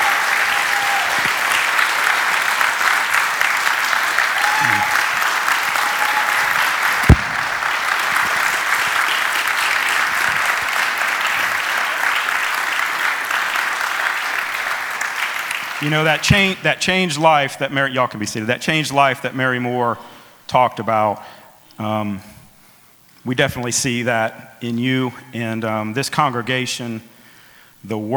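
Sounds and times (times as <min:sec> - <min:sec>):
audience applauding: 0:00.0 - 0:16.6
sharp knock: 0:07.1 - 0:07.6
speech: 0:15.8 - 0:22.3, 0:23.2 - 0:27.1, 0:27.8 - 0:28.1.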